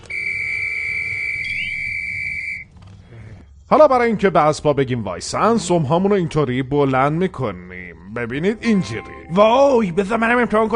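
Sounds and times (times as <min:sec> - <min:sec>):
whistle blown to call horses: 0:00.0 - 0:02.6
speech: 0:03.7 - 0:10.7.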